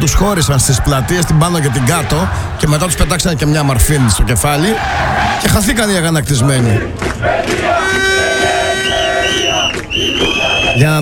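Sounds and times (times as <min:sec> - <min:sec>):
protesters shouting: 0:00.0 - 0:11.0
speech: 0:00.1 - 0:08.0, 0:10.0 - 0:11.0.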